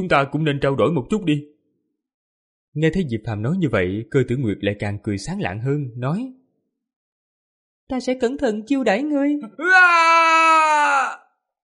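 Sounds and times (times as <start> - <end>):
speech: 0.0 - 1.5, 2.8 - 6.4, 7.9 - 11.2
miserable drawn-out scream of pain: 9.5 - 11.3.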